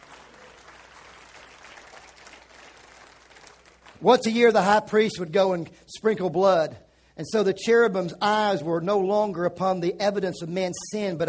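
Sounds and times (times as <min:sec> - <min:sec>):
audience clapping: 0:00.0 - 0:04.5
speech: 0:04.0 - 0:11.2.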